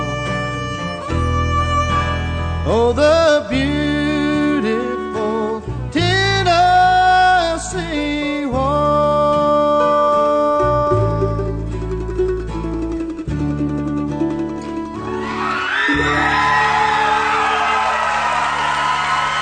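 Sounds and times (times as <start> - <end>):
bluegrass performance: 0.0 - 17.9
speech: 2.7 - 3.7
excited concert crowd cheering and shrieking: 15.0 - 19.4.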